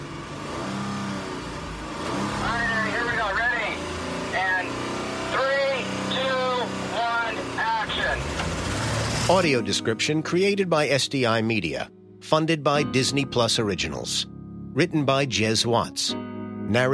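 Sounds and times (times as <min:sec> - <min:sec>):
stunt car engine revving: 0:00.0 - 0:09.6
speech: 0:09.3 - 0:16.9.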